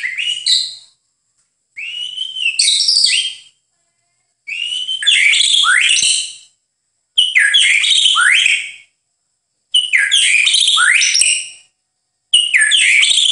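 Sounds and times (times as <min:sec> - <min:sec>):
White-rumped shama song with sustained wavering whistle: 0:00.0 - 0:01.0, 0:01.8 - 0:03.6, 0:04.4 - 0:06.6, 0:07.2 - 0:09.0, 0:09.7 - 0:11.7, 0:12.3 - 0:13.2.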